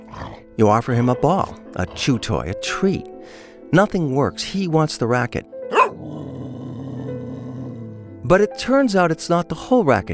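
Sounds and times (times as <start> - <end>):
dog growling: 0.0 - 2.6, 5.7 - 8.3
speech: 0.4 - 5.6, 8.3 - 10.1.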